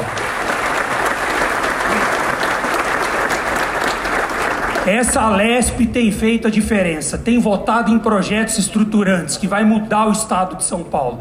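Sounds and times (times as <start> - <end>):
audience applause: 0.0 - 5.4
speech: 4.8 - 11.2.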